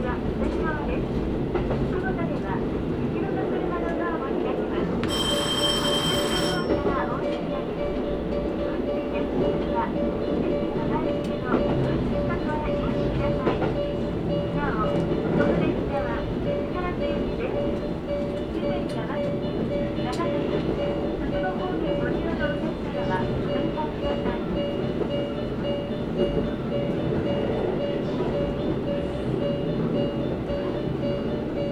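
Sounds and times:
train rumble on the Karatsu Line and Nagasaki Main Line: 0.0s - 31.7s
scattered voices: 1.8s - 31.7s
short bright ringing tone: 5.1s - 6.9s.

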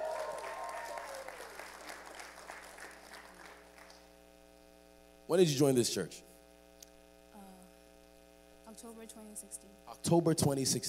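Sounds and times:
audience clapping: 0.0s - 4.1s
speech: 5.3s - 6.3s, 8.8s - 10.8s.

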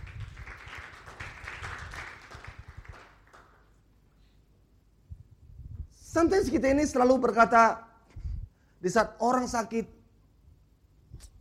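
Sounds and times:
audience applause: 0.0s - 3.7s
speech: 6.2s - 7.9s, 8.8s - 10.0s.

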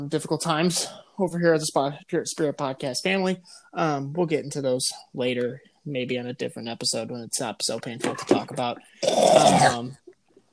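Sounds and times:
speech: 0.0s - 10.0s
man clearing his throat: 9.0s - 10.0s.

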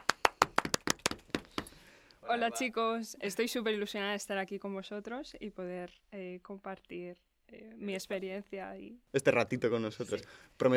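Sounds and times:
applause: 0.0s - 1.7s
speech: 2.3s - 10.7s.

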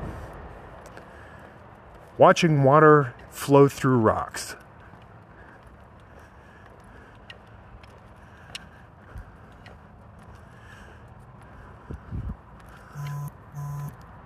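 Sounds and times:
speech: 2.2s - 4.6s
mobile phone vibrating: 12.9s - 13.9s.

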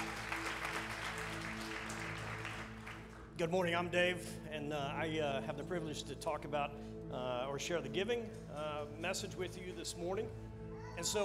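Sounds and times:
audience applause: 0.0s - 3.3s
speech: 3.4s - 11.2s.

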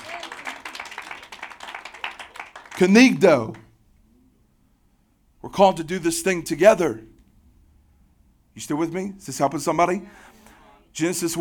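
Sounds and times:
crowd clapping: 0.0s - 3.7s
speech: 2.8s - 3.6s, 5.6s - 7.1s, 8.6s - 11.3s.

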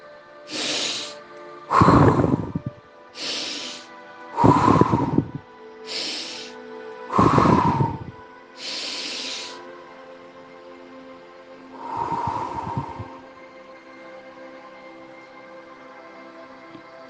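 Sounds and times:
person taking quick breaths and one long breath: 0.5s - 9.6s, 11.8s - 13.4s.

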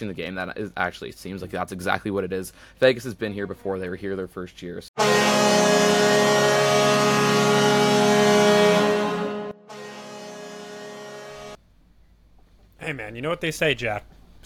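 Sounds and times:
speech: 0.0s - 5.5s, 12.9s - 14.4s
truck horn: 5.0s - 11.6s.

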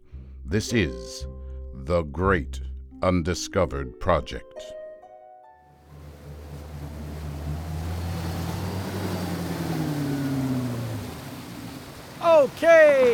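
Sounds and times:
speech: 0.5s - 4.8s
boat motor droning on open water: 5.8s - 13.1s
water wash: 5.9s - 13.1s.

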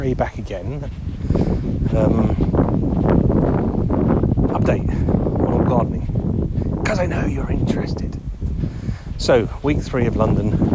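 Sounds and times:
speech: 0.0s - 3.0s, 4.6s - 8.2s, 9.2s - 10.7s
strong wind buffeting the microphone beside a river: 0.0s - 10.7s.

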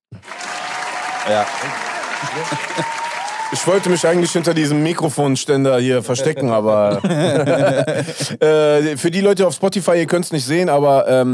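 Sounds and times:
applause sound effect: 0.1s - 5.0s
speech: 1.2s - 11.3s
laughter: 1.7s - 3.1s, 6.1s - 8.4s.

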